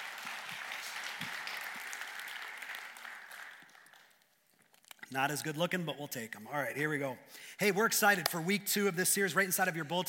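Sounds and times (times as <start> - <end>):
audience applause: 0.0 - 4.4
speech: 5.1 - 10.0.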